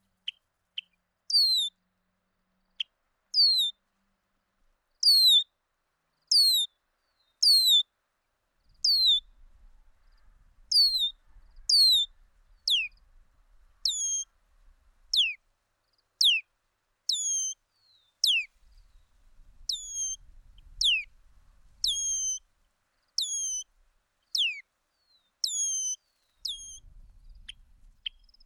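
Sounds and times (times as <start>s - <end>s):
bird whistling calls: 1.3s - 1.7s, 5.0s - 5.4s, 7.4s - 7.8s, 8.8s - 9.2s, 10.7s - 12.1s, 12.7s - 12.9s, 13.9s - 14.3s, 15.2s - 15.4s, 17.1s - 17.6s, 18.2s - 18.5s, 19.7s - 20.2s, 20.8s - 21.1s, 21.8s - 22.4s, 23.2s - 23.7s, 24.4s - 24.6s, 25.4s - 26.8s.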